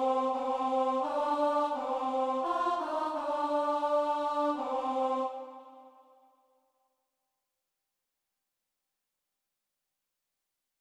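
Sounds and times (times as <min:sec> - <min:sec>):
tenor singing: 0:00.0 - 0:05.9.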